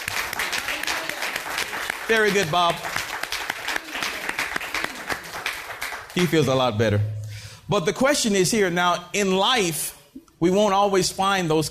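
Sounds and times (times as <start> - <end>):
audience clapping: 0.0 - 6.7
speech: 2.1 - 3.0, 6.2 - 11.6.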